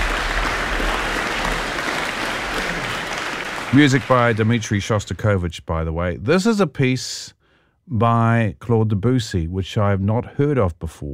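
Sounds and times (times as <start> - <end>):
concert audience applause: 0.0 - 4.9
speech: 3.7 - 11.1.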